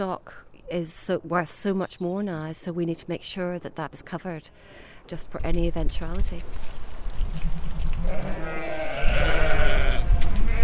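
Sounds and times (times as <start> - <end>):
speech: 0.0 - 8.8
sheep bleating on a farm: 8.0 - 10.6.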